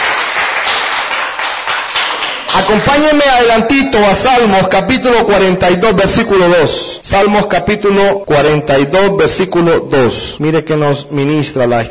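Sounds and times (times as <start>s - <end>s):
church congregation clapping in praise during a service: 0.0s - 3.7s
speech: 2.6s - 11.8s.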